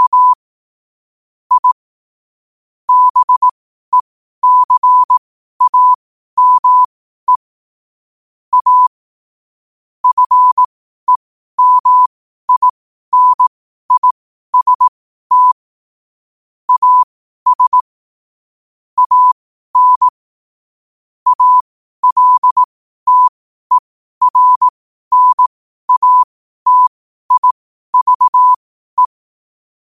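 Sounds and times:
morse code at 5 wpm: 0.0s - 0.4s, 1.5s - 1.8s, 2.9s - 7.4s, 8.5s - 8.9s, 10.0s - 15.6s, 16.7s - 17.9s, 19.0s - 20.2s, 21.3s - 29.2s.

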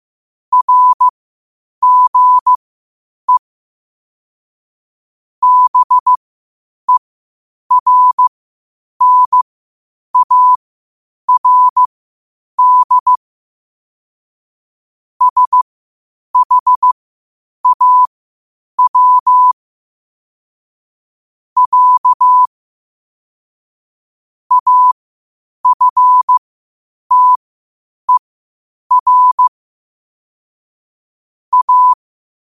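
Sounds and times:
morse code at 5 wpm: 0.5s - 1.1s, 1.8s - 2.6s, 5.4s - 6.2s, 7.7s - 8.3s, 9.0s - 9.4s, 10.2s - 10.6s, 11.3s - 11.9s, 12.6s - 13.2s, 15.2s - 15.6s, 16.4s - 17.0s, 17.6s - 18.1s, 18.8s - 19.6s, 21.6s - 22.5s, 24.5s - 25.0s, 25.6s - 26.4s, 27.1s - 27.4s, 28.9s - 29.5s, 31.5s - 32.0s.

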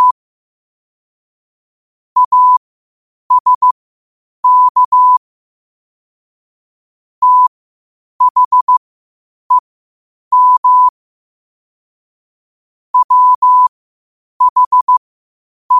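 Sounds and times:
morse code at 5 wpm: 2.2s - 2.6s, 3.3s - 3.8s, 4.4s - 5.2s, 7.2s - 7.5s, 8.2s - 8.8s, 10.3s - 10.9s, 13.0s - 13.7s, 14.4s - 15.0s.

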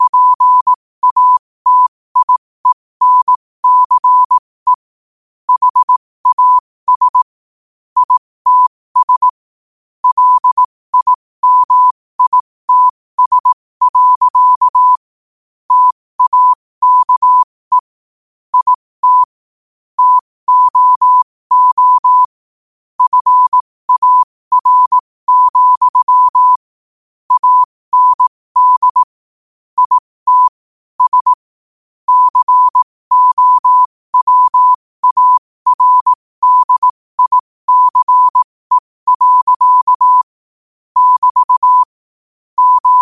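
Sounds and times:
morse code at 5 wpm: 0.0s - 4.9s, 5.5s - 7.4s, 8.0s - 9.4s, 10.0s - 15.1s, 15.7s - 19.4s, 20.0s - 22.4s, 23.0s - 26.7s, 27.3s - 29.2s, 29.8s - 31.5s, 32.1s - 40.4s, 41.0s - 42.0s, 42.6s - 43.0s.

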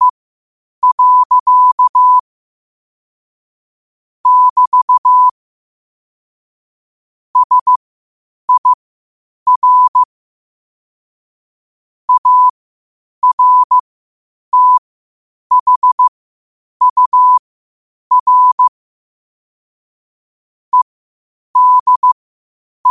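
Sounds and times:
morse code beeps at 5 wpm: 0.8s - 2.2s, 4.2s - 5.3s, 7.4s - 7.8s, 8.5s - 8.8s, 9.5s - 10.1s, 12.1s - 12.5s, 13.2s - 13.8s, 14.5s - 14.8s, 15.5s - 16.1s, 16.8s - 17.4s, 18.1s - 18.7s, 21.6s - 22.2s.

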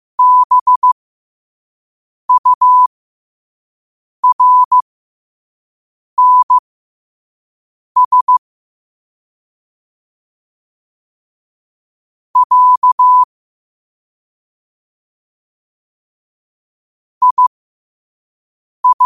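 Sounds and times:
morse code at 5 wpm: 0.2s - 1.0s, 2.3s - 2.9s, 4.2s - 4.8s, 6.2s - 6.6s, 8.0s - 8.4s, 12.4s - 13.3s, 17.2s - 17.5s, 18.8s - 19.0s.

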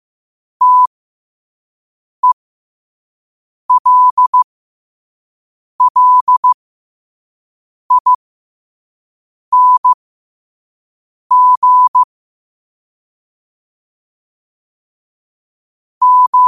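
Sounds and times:
morse code at 5 wpm: 0.6s - 0.9s, 3.7s - 4.4s, 5.8s - 6.6s, 7.9s - 8.1s, 9.5s - 10.0s, 11.3s - 12.1s, 16.0s - 16.4s.

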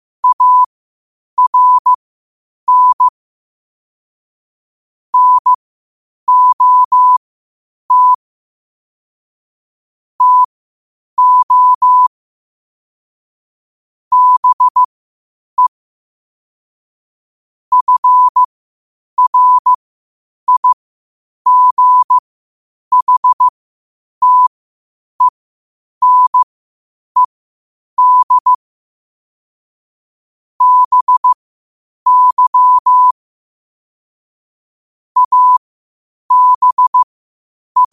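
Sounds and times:
morse code at 5 wpm: 0.2s - 0.7s, 1.4s - 2.0s, 2.7s - 3.1s, 5.2s - 5.6s, 6.3s - 7.2s, 7.9s - 8.2s, 10.2s - 10.5s, 11.2s - 12.1s, 14.1s - 14.9s, 17.7s - 18.5s, 19.2s - 19.8s, 20.5s - 20.8s, 21.5s - 22.2s, 22.9s - 23.5s, 24.2s - 24.5s, 26.0s - 26.5s, 28.0s - 28.6s, 30.6s - 31.4s, 32.1s - 33.2s, 35.2s - 35.6s, 36.3s - 37.1s.

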